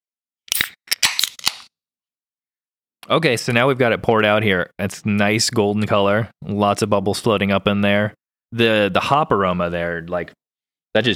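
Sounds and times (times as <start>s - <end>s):
beer can being opened: 0.5s - 1.7s
speech: 3.1s - 11.1s.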